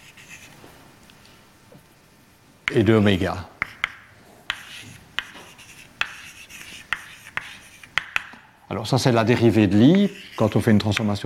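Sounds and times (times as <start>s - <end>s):
speech: 2.7s - 3.5s, 8.8s - 11.2s
writing out mathematical equations: 3.6s - 8.4s, 9.8s - 11.2s.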